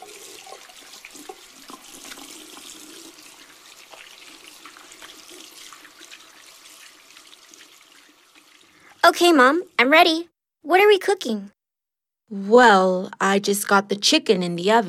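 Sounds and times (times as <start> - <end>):
washing hands under running tap water: 0.0 - 9.8
speech: 9.1 - 11.6, 12.3 - 14.8.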